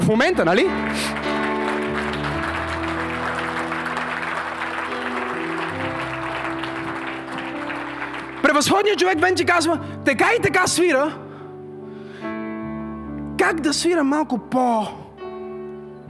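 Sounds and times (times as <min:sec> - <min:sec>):
audience clapping: 0:00.0 - 0:09.4
speech: 0:00.1 - 0:01.4, 0:08.5 - 0:11.2, 0:13.4 - 0:15.0.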